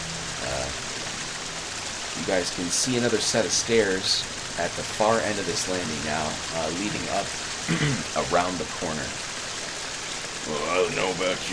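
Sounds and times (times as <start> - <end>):
waterfall roaring: 0.0 - 11.5
speech: 2.2 - 9.3, 10.5 - 11.5.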